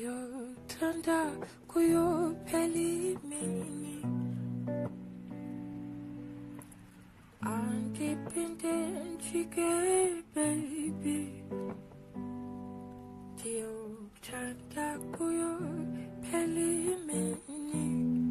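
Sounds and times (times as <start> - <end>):
a cappella singing: 0.0 - 4.3, 7.4 - 11.8, 13.4 - 18.2.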